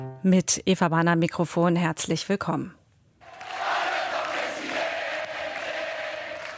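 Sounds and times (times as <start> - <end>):
speech: 0.3 - 2.8
Peronist supporters in Argentina cheering their new president Alberto Fernández: 3.2 - 6.5.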